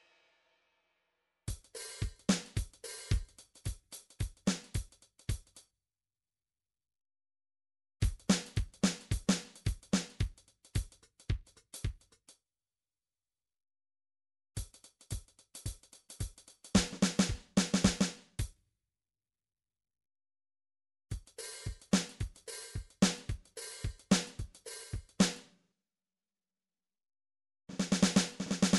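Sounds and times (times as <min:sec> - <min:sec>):
drums: 0:00.0 - 0:00.2, 0:01.5 - 0:05.6, 0:08.0 - 0:12.2, 0:14.6 - 0:18.5, 0:21.1 - 0:25.4, 0:27.7 - 0:28.7.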